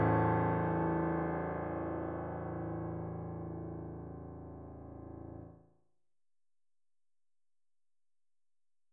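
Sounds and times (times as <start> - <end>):
pianist playing pop: 0.0 - 5.0.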